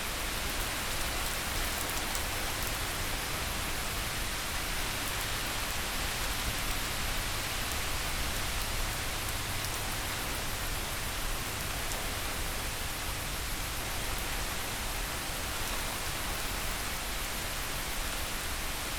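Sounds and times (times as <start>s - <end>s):
relaxing rain: 0.0s - 18.9s.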